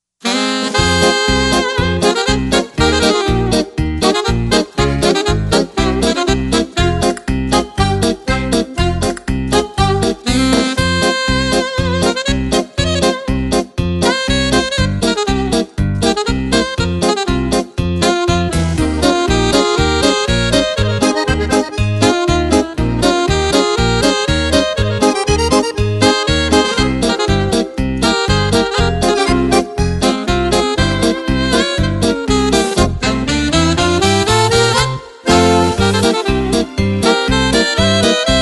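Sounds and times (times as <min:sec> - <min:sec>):
paso doble music: 0:00.2 - 0:38.4.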